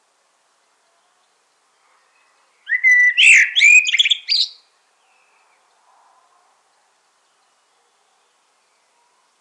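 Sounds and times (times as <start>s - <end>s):
common blackbird whistled song: 2.7s - 4.6s.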